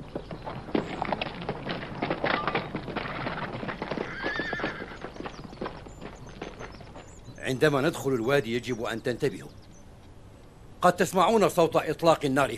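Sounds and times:
horses neighing: 0.0 - 7.4
hooves clip-clopping: 0.0 - 9.3
speech: 7.5 - 9.6, 10.8 - 12.5.

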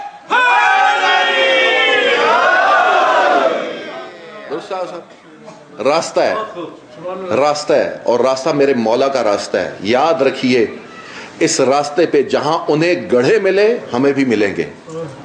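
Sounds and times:
large crowd chanting a religious slogan: 0.3 - 4.4
speech: 5.8 - 15.2.

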